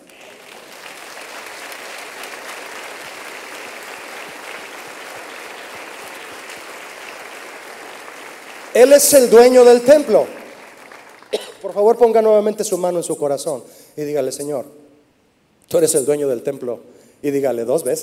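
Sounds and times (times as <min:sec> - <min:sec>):
audience applause: 0:00.0 - 0:11.4
speech: 0:08.8 - 0:10.4, 0:11.7 - 0:14.8, 0:15.7 - 0:18.0.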